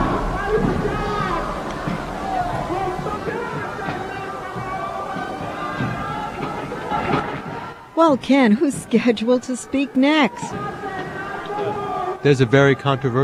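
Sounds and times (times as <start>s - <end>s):
large rally crowd roaring and cheering: 0.0s - 13.2s
speech: 8.0s - 10.8s, 12.2s - 13.2s.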